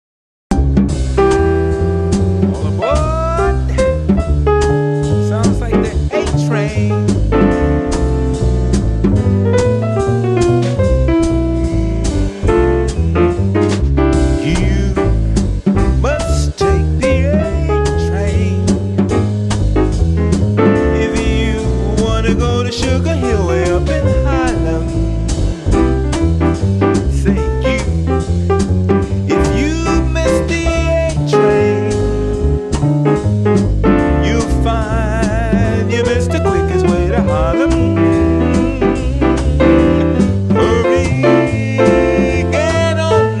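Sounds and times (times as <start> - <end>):
swing music: 0.5 - 43.3.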